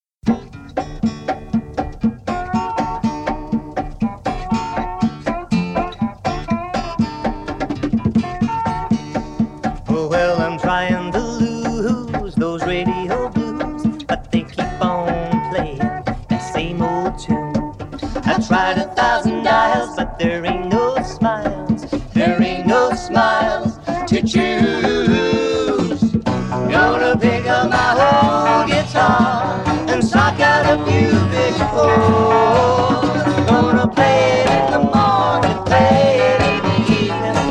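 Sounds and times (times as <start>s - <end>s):
blues music on radio: 0.2s - 37.5s.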